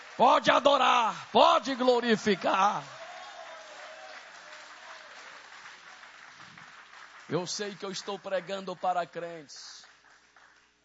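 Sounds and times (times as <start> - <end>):
audience applauding: 0.0 - 10.8
speech: 0.2 - 3.0, 7.3 - 9.8.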